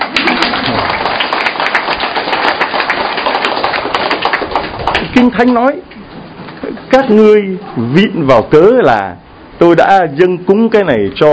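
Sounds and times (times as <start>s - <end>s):
audience applause at a Vietnamese-language Christian sermon: 0.0s - 5.5s
speech: 5.2s - 5.9s, 6.6s - 11.3s.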